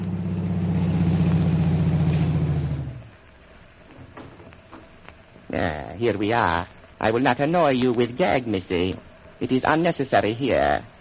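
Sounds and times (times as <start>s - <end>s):
aeroplane engine idling: 0.0s - 3.1s
speech: 5.5s - 10.9s.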